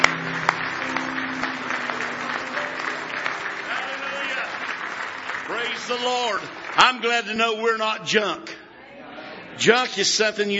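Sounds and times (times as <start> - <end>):
audience clapping in applause: 0.0 - 8.0
speech: 5.9 - 8.5, 9.6 - 10.5.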